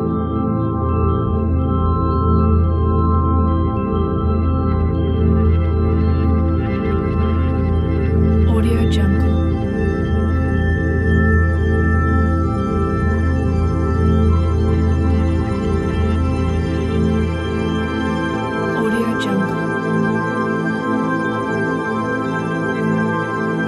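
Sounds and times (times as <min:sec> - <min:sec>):
ambient drone: 0:00.0 - 0:23.6.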